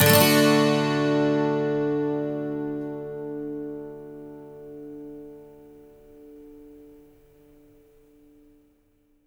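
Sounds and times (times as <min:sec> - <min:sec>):
12-string electric and acoustic guitar loops in D major: 0:00.0 - 0:07.1.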